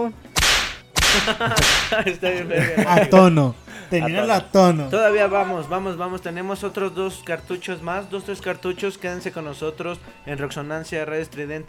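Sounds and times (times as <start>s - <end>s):
speech: 0.0s - 0.2s, 1.1s - 11.6s
whip crack sound effect: 0.4s - 2.0s
laughter: 1.1s - 4.4s.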